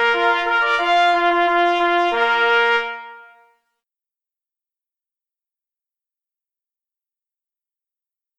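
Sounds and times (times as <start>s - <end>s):
march music: 0.0s - 3.4s.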